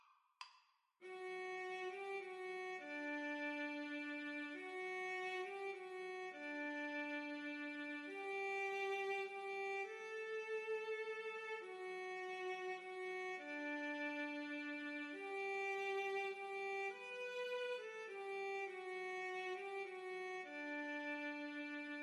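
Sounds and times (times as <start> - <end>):
violin duet: 1.1 - 22.0.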